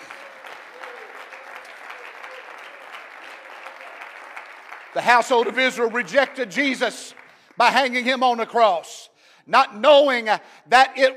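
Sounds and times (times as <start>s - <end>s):
audience clapping hands: 0.0s - 8.0s
speech: 5.0s - 11.1s.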